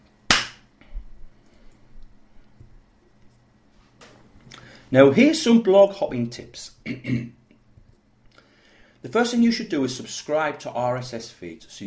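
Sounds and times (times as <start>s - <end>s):
single hand clap as edit marker: 0.3s - 0.6s
speech: 4.9s - 7.4s, 9.0s - 11.8s.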